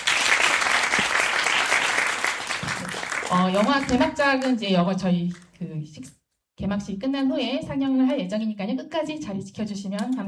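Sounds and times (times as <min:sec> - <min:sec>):
applause: 0:00.0 - 0:04.6
speech: 0:03.3 - 0:10.2.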